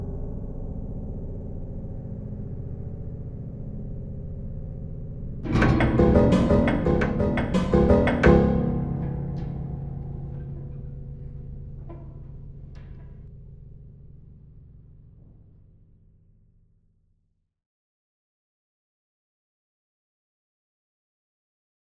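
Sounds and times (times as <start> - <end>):
prepared piano piece: 5.5 - 11.3.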